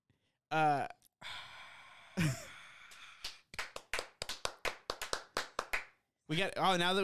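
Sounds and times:
voiced sigh: 0:00.5 - 0:03.4
breathy exhale: 0:01.2 - 0:03.2
team clapping hands: 0:02.9 - 0:06.0.

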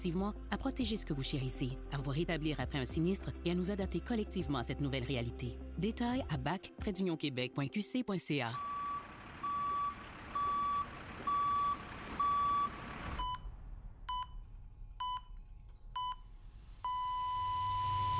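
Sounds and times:
speech: 0:00.0 - 0:08.7
construction vehicle reversing alarm beeps: 0:08.6 - 0:13.5, 0:16.8 - 0:18.1
construction vehicle engine rumbling: 0:08.6 - 0:18.1.

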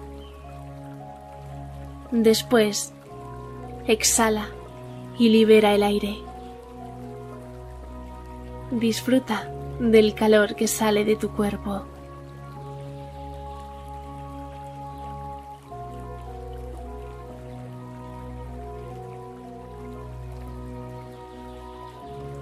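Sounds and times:
flowing river water: 0:00.0 - 0:22.4
speech: 0:02.1 - 0:03.0, 0:03.9 - 0:04.6, 0:05.2 - 0:06.3, 0:08.7 - 0:11.9.

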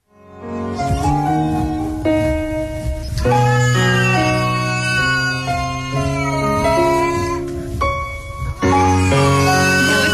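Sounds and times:
sad piano song: 0:00.0 - 0:10.1
howling cat: 0:00.8 - 0:02.5, 0:03.1 - 0:07.4, 0:08.7 - 0:10.1.

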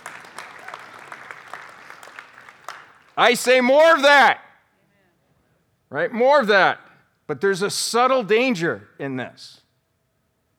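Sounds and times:
audience applause: 0:00.0 - 0:04.0
speech: 0:03.2 - 0:04.4, 0:05.9 - 0:09.6.

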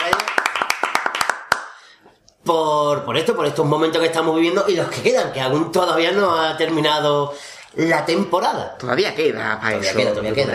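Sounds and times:
audience clapping: 0:00.0 - 0:02.0
speech: 0:02.5 - 0:10.5.

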